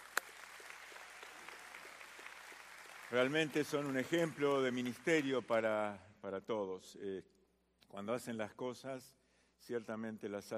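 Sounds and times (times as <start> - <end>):
audience applause: 0.0 - 5.7
speech: 3.1 - 7.3, 7.9 - 10.5.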